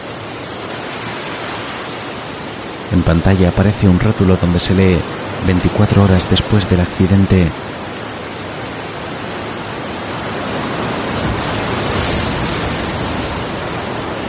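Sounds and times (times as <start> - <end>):
waves breaking on wet sand in a cliff inlet: 0.0 - 14.2
speech: 2.9 - 7.7.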